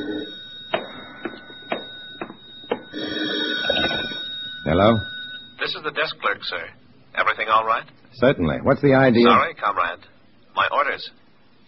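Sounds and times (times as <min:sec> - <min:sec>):
telephone ringing: 0:00.0 - 0:06.1
steady hum: 0:00.0 - 0:11.6
speech: 0:04.7 - 0:11.2.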